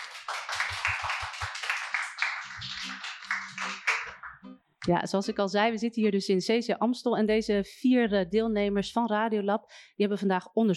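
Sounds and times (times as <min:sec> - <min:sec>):
audience applause: 0:00.0 - 0:04.4
speech: 0:04.8 - 0:10.7.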